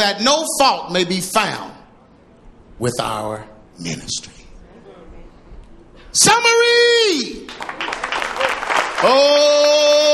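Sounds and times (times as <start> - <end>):
speech: 0.0 - 1.7, 2.8 - 4.4, 6.1 - 8.0, 9.0 - 10.1
audience clapping: 7.4 - 10.1.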